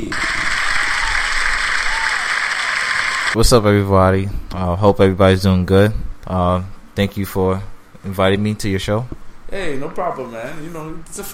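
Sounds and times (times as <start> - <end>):
audience applause welcoming a guest on a show: 0.0 - 3.4
speech: 3.4 - 11.3.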